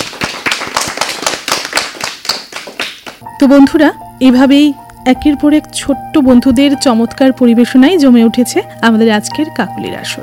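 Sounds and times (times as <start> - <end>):
audience clapping for a child performer at a children's show: 0.0 - 3.2
speech: 3.4 - 10.2.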